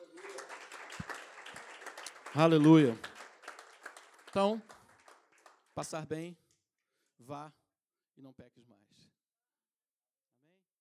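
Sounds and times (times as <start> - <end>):
audience applause: 0.0 - 5.7
speech: 2.3 - 3.1, 4.4 - 4.7, 5.8 - 6.4, 7.2 - 7.6, 8.2 - 9.2.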